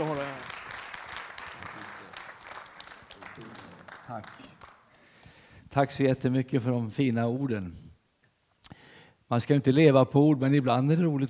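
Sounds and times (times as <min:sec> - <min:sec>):
warm audience applause: 0:00.0 - 0:05.0
speech: 0:04.1 - 0:04.5, 0:05.8 - 0:07.8, 0:09.3 - 0:11.2.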